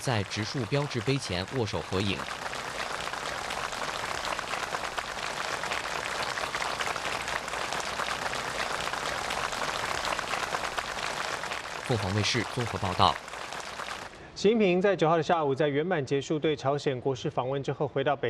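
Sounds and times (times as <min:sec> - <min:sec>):
speech: 0:00.0 - 0:02.4, 0:11.9 - 0:13.3, 0:14.4 - 0:18.2
warm applause from a crowd: 0:00.0 - 0:14.1.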